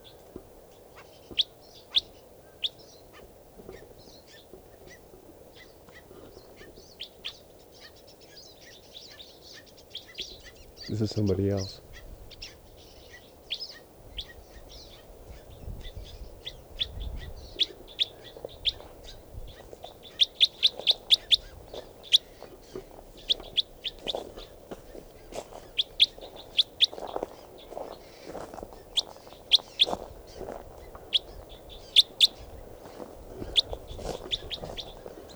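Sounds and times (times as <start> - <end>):
male bird chirping: 0.0 - 35.3
speech: 11.0 - 11.8.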